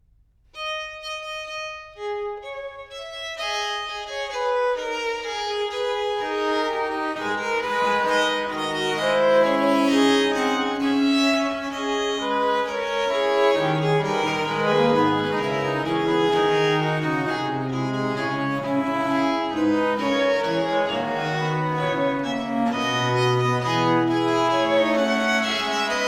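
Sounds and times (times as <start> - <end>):
fantasia for strings: 0.6 - 26.0.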